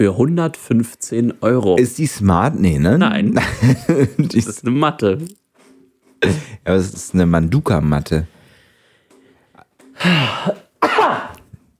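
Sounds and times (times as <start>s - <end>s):
speech: 0.0s - 5.4s, 6.2s - 8.4s, 10.0s - 10.6s
laughter: 3.4s - 4.6s
person coughing: 6.2s - 6.6s, 10.0s - 11.5s.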